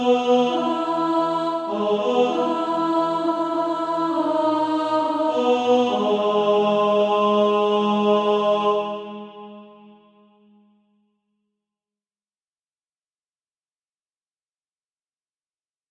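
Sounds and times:
tenor singing: 0.0s - 9.9s.

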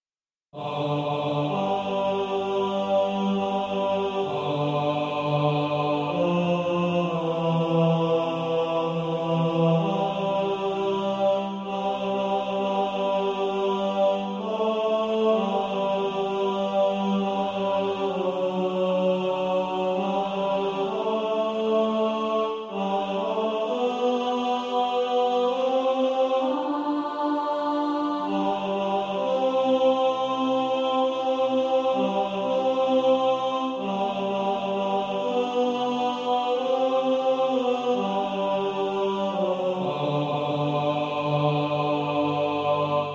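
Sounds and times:
tenor singing: 0.6s - 43.1s.

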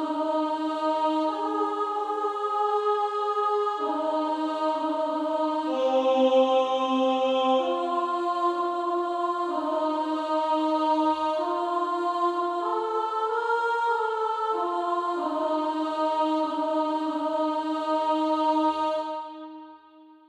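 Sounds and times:
female choir singing: 0.0s - 20.2s.

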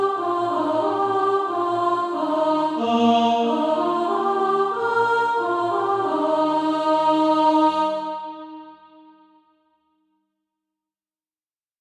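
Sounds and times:
soprano singing practice music: 0.0s - 8.7s.

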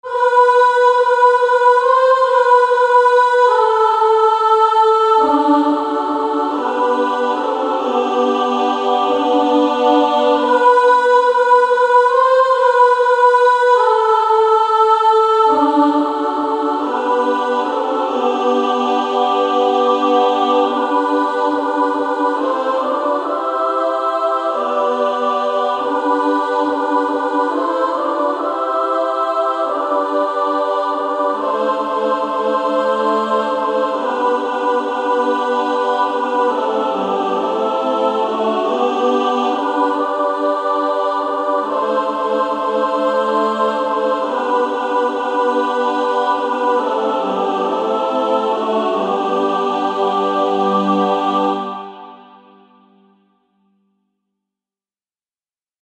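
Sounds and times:
female SSAA choir singing: 0.0s - 52.8s.

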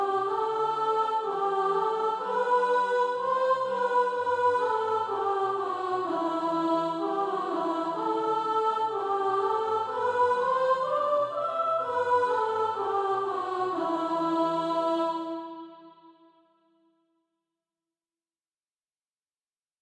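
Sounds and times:
soprano singing SATB practice music: 0.0s - 15.8s.

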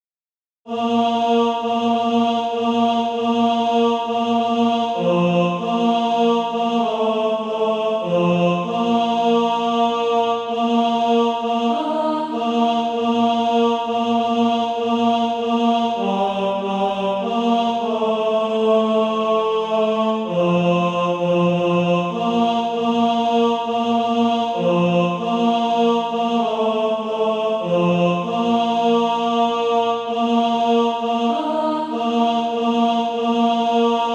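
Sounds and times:
tenor singing: 0.7s - 34.1s.

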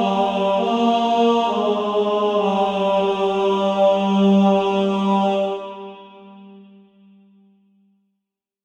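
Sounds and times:
female choir singing: 0.0s - 6.6s.

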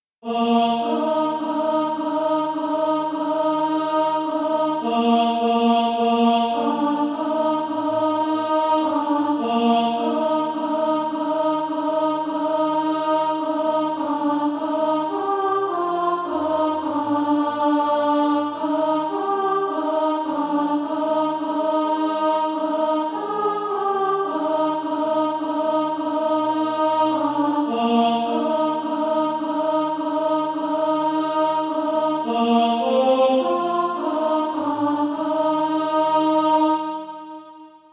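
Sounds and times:
alto voice singing SATB practice music: 0.2s - 37.9s.

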